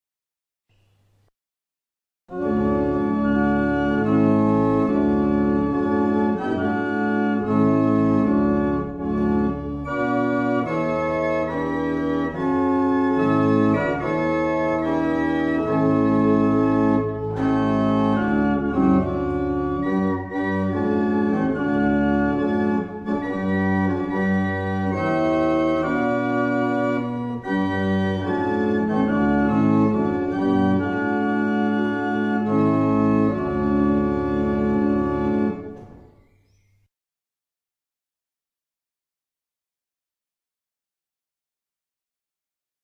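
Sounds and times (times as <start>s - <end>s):
barrel organs at Mount Ephraim: 2.3s - 36.3s.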